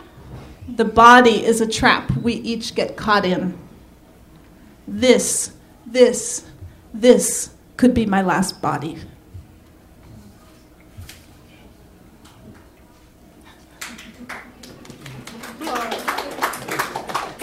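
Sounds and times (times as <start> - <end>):
speech: 0.7 - 3.7, 4.9 - 9.1
audience clapping: 13.7 - 17.4.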